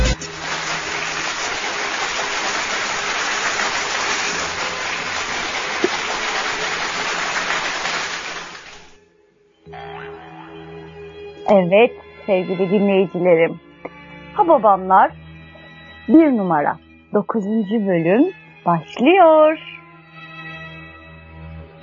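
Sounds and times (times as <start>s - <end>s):
big crowd applause: 0.2s - 9.0s
speech: 11.5s - 13.7s, 14.4s - 15.2s, 16.1s - 19.7s.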